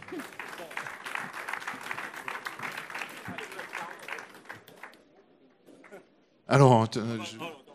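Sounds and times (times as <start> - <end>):
audience applause: 0.0 - 5.0
loud voice speaking: 6.5 - 7.6.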